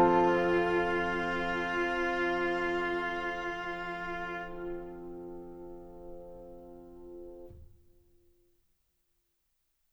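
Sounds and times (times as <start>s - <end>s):
cello instrumental: 0.0s - 7.0s.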